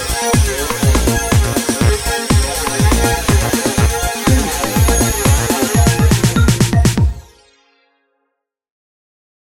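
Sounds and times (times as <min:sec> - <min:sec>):
dancing robots music bed: 0:00.0 - 0:07.4.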